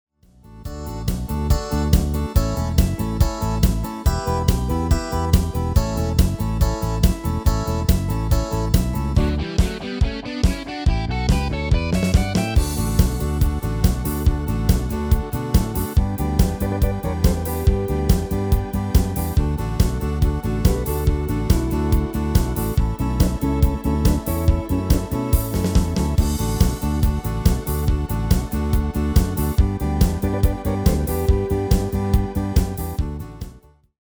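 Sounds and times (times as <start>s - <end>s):
MIDI music: 0.4s - 33.6s.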